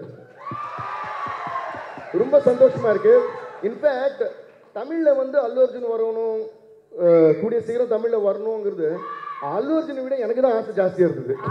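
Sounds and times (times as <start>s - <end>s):
low thumping beats: 0.0s - 3.6s
sustained high shout: 0.2s - 4.0s, 9.0s - 9.7s
loud crowd cheering and roaring: 0.2s - 4.4s
speech: 2.1s - 11.4s.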